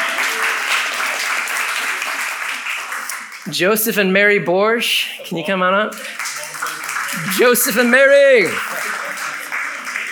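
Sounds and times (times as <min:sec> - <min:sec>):
audience applause: 0:00.0 - 0:03.5, 0:05.9 - 0:10.1
speech: 0:03.4 - 0:06.2, 0:07.1 - 0:08.8.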